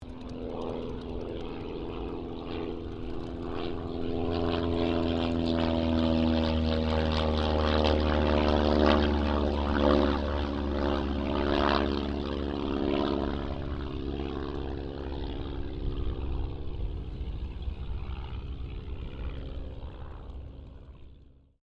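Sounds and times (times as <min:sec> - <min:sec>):
Auster III aircraft passing: 0:00.0 - 0:21.6.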